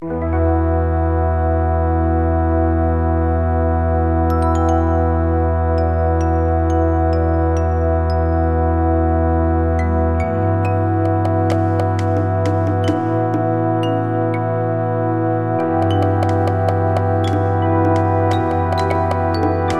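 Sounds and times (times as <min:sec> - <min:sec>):
SC55 synthesizer music: 0:00.0 - 0:19.7.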